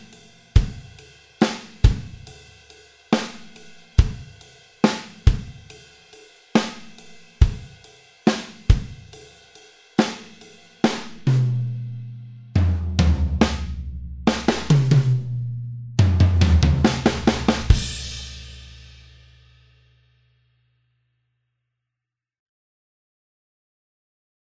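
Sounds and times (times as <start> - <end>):
drum barrage: 0.0 - 2.4, 3.2 - 5.8, 6.6 - 9.2, 10.0 - 19.4.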